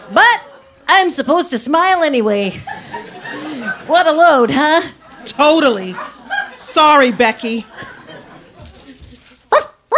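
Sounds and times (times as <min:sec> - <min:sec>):
speech: 0:00.1 - 0:00.4, 0:01.0 - 0:02.8, 0:03.9 - 0:06.2, 0:06.8 - 0:07.8
laughter: 0:02.4 - 0:09.1
shuffling: 0:07.7 - 0:09.5
dog barking: 0:09.5 - 0:09.9.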